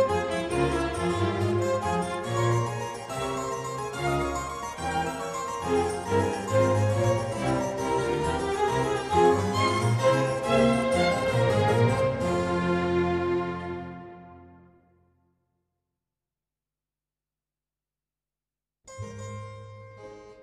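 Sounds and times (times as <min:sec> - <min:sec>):
harpsichord concerto in F minor allegro: 0:00.0 - 0:14.7.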